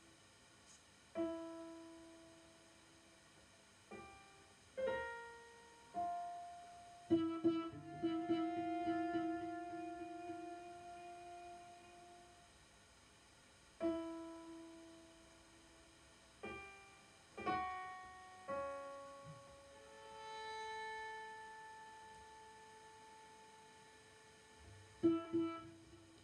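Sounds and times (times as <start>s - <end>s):
piano at a birthday concert: 0.0s - 12.6s, 13.7s - 26.2s
two cellos at a birthday concert: 6.0s - 12.5s, 18.6s - 26.2s.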